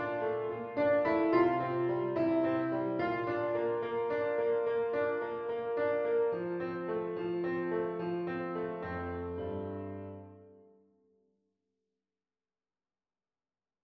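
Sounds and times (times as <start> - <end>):
piano piece: 0.0 - 10.8.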